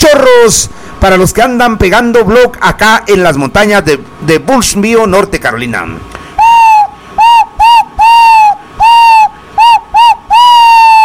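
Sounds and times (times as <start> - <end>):
speech: 0.1 - 6.1
owl-hoot whistle sound effect: 6.4 - 11.0.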